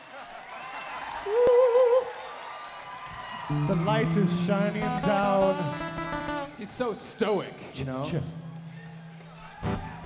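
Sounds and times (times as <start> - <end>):
audience applause: 0.0 - 5.0, 8.4 - 10.0
speech: 3.5 - 5.9, 6.6 - 8.4.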